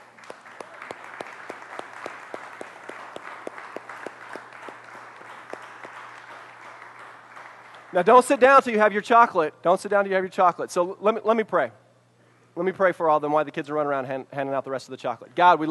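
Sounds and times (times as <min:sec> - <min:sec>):
crowd applause for mothers: 0:00.0 - 0:08.3
speech: 0:07.9 - 0:11.8, 0:12.6 - 0:15.6.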